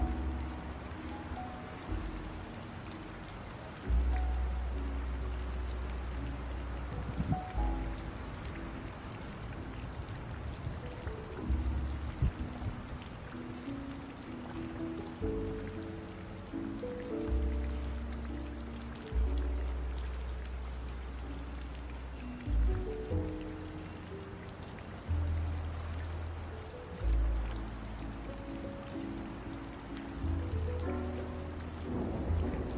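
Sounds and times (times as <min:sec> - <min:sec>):
ambient rainy city jazz music: 0:00.0 - 0:32.7.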